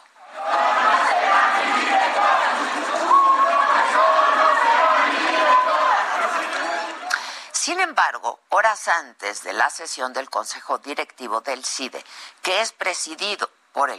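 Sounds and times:
large crowd shouting protest chant: 0.2s - 7.1s
speech: 7.7s - 13.9s.

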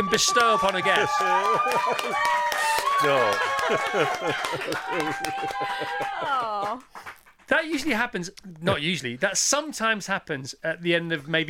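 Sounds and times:
control room staff applauding: 0.0s - 7.9s
speech: 0.0s - 11.4s
laughter: 0.8s - 6.8s.

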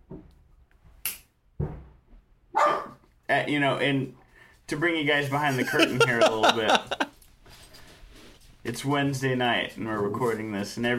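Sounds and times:
pet dog barking in a home: 2.5s - 3.0s
speech: 3.3s - 7.0s, 8.6s - 10.9s
laughter: 5.5s - 7.1s.

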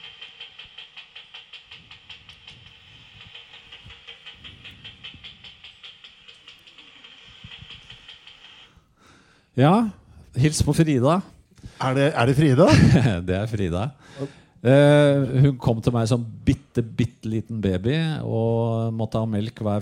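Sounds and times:
hunting bat echolocation calls via detector: 0.0s - 8.8s
speech: 9.6s - 19.7s
laughter: 12.6s - 13.2s.

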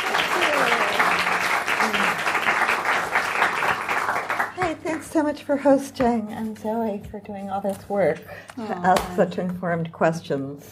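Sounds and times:
bookshop audience applauding guests arriving for a literary event: 0.0s - 5.1s
speech: 5.2s - 10.6s.

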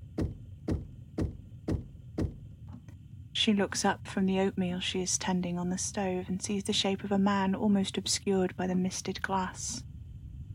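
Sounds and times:
knock at a back door: 0.0s - 2.4s
speech: 3.4s - 9.9s.

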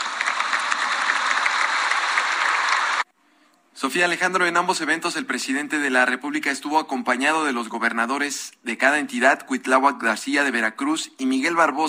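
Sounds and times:
crowd applauding: 0.0s - 3.1s
speech: 3.8s - 11.8s.

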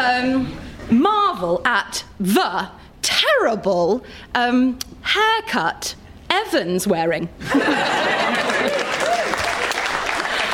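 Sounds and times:
speech: 0.0s - 8.8s
laughter: 7.4s - 10.5s
crowd applauding: 8.1s - 10.5s
voices and whoops: 8.6s - 9.7s.

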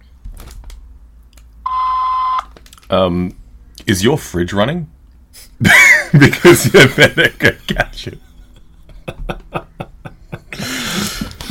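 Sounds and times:
voicemail message beep tone: 1.7s - 2.4s
speech: 2.9s - 5.0s, 5.6s - 8.3s
laughter: 5.6s - 11.4s.

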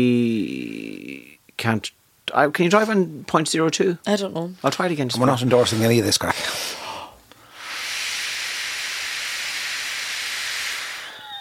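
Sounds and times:
speech: 0.0s - 0.6s, 1.6s - 6.6s
breath blown hard into a breathalyzer: 6.7s - 11.3s.

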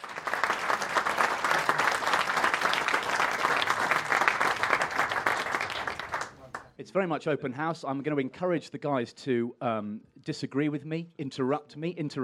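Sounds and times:
audience applause: 0.0s - 6.7s
speech: 6.8s - 12.2s.

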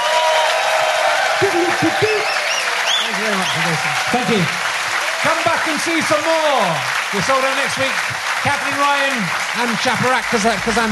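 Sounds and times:
people cheering and whooping: 0.0s - 7.9s
comedy show audience applauding a comedian: 0.0s - 10.9s
speech: 3.2s - 10.9s.

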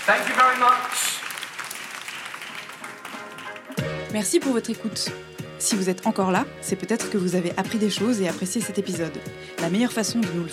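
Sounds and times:
speech: 0.0s - 1.2s, 4.1s - 10.5s
audience applause: 0.0s - 3.8s.

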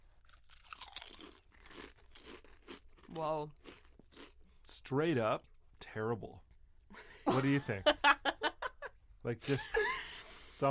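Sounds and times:
chips being chewed: 0.0s - 4.4s
speech: 3.2s - 3.6s, 4.9s - 6.5s, 7.3s - 8.0s, 9.2s - 10.0s, 10.6s - 10.7s.

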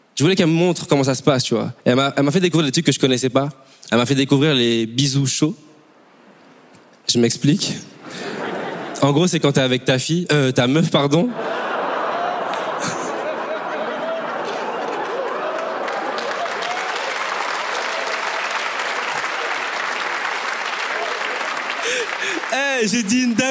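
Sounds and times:
speech: 0.2s - 5.7s, 7.1s - 8.4s, 9.0s - 11.7s, 22.9s - 23.4s
laughter: 8.0s - 9.2s, 11.2s - 18.1s, 19.1s - 23.4s
audience applause: 11.8s - 23.4s.

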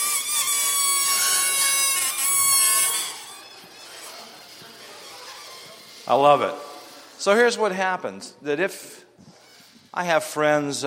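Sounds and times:
audience making noises with balloons: 0.0s - 7.2s
speech: 6.1s - 6.6s, 7.2s - 9.1s, 9.9s - 10.8s.

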